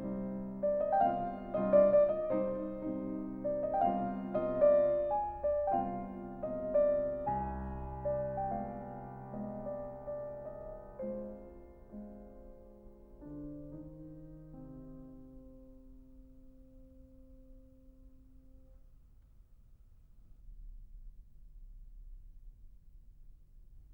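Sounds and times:
solo piano mazurka in C minor: 0:00.0 - 0:18.9.

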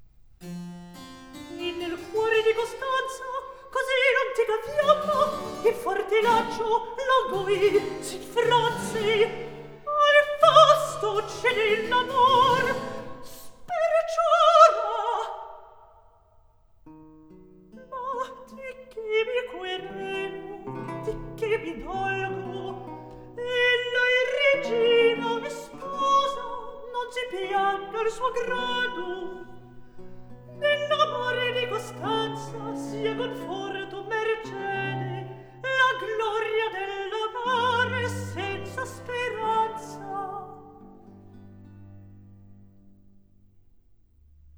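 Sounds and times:
recitative singing: 0:01.4 - 0:15.8, 0:17.8 - 0:41.1.

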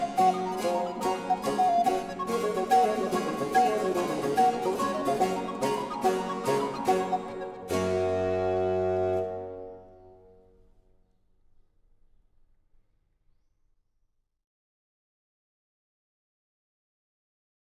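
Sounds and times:
recorder and basso continuo playing baroque sonata allegro: 0:00.0 - 0:10.6.

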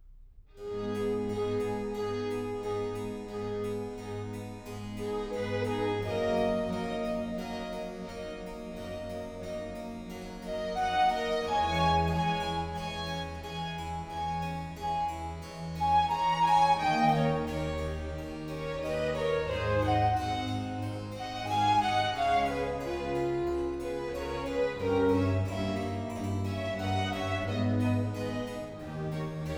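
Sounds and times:
transverse flute concerto movement: 0:00.6 - 0:29.5.

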